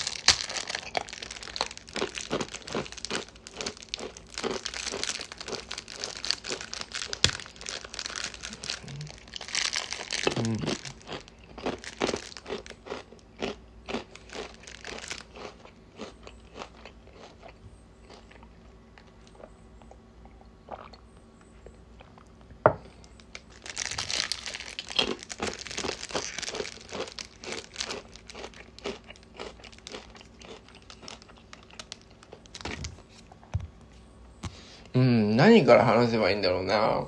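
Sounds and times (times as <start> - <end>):
crinkling rice cracker packaging: 0.0 - 12.8, 14.0 - 15.4, 23.1 - 33.3
crunching and chewing black pepper rice crackers: 0.0 - 20.0, 22.0 - 33.5
speech: 35.4 - 37.0.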